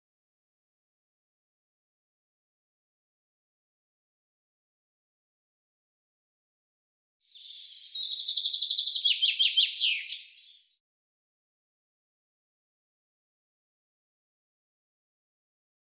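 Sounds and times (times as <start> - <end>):
bird trilling: 7.4 - 10.6.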